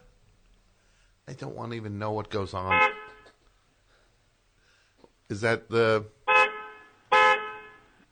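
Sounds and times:
speech: 1.3 - 2.9, 5.3 - 6.1
car horn honks from a vehicle with two horns: 2.7 - 3.4, 6.3 - 7.9.

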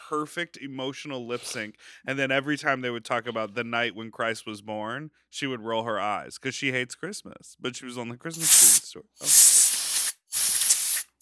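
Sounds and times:
speech: 0.1 - 9.6
compressed air spray cleaning out a phone: 8.4 - 11.2.

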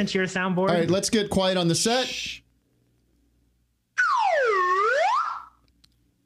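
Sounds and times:
speech: 0.0 - 2.4
whistle: 4.0 - 5.6.

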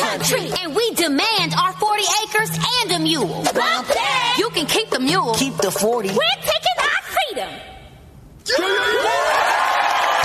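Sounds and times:
speech: 0.2 - 7.6
crowd cheering with high whoops: 8.5 - 10.2.

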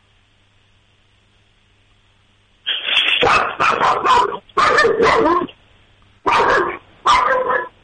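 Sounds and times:
dog barking: 3.2 - 5.6, 6.3 - 7.8.

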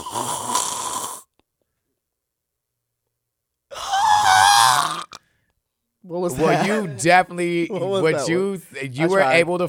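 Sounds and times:
voice imitating audience screaming and clapping with raspy throat bursts: 0.0 - 1.4, 3.8 - 5.3
speech: 6.3 - 9.6.

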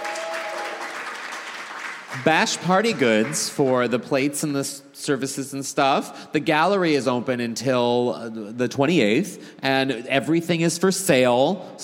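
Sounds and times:
audience applause: 0.0 - 3.9
speech: 2.2 - 11.8.

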